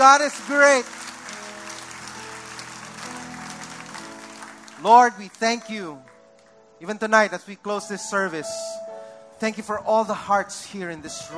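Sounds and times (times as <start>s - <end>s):
speech: 0.0s - 1.0s, 4.8s - 6.1s, 6.8s - 8.8s, 9.4s - 11.3s
audience clapping: 0.0s - 6.6s.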